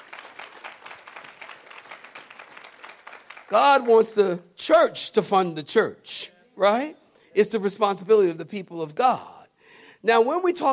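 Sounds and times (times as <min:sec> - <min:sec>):
crowd clapping in steady applause: 0:00.0 - 0:04.4
speech: 0:03.5 - 0:09.3, 0:10.0 - 0:10.7.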